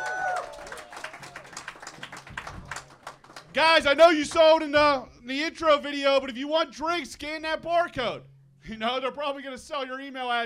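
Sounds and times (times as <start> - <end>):
audience clapping at a live show taping at Bottle Rocket Avenue: 0.0 - 4.6
speech: 3.6 - 10.4.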